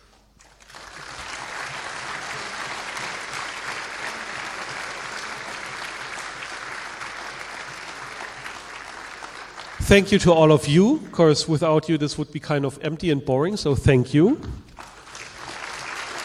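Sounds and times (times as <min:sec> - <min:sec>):
audience applause: 0:00.4 - 0:10.2, 0:14.8 - 0:16.2
speech: 0:09.9 - 0:14.7.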